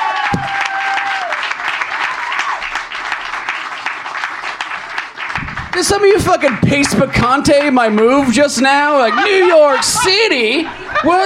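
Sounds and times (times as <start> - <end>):
audience applause: 0.0 - 8.4
speech: 5.8 - 11.2
laughter: 8.8 - 11.2.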